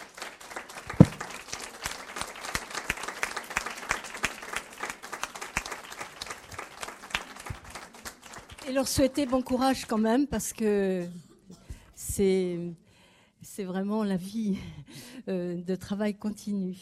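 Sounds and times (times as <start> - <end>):
audience applauding loudly: 0.0 - 10.0
speech: 8.7 - 11.2, 12.2 - 12.8, 13.6 - 16.8.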